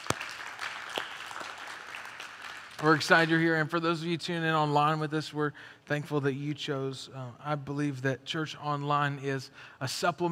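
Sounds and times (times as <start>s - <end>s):
congregation clapping at a church service: 0.0s - 3.6s
speech: 2.8s - 10.3s.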